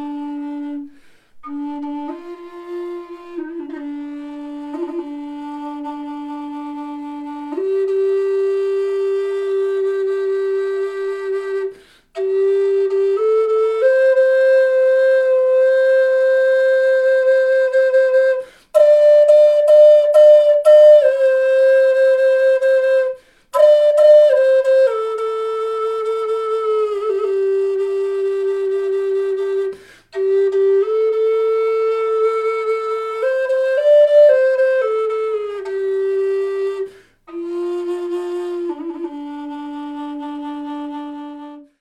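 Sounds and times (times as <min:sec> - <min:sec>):
native flute in D: 0:00.0 - 0:41.7.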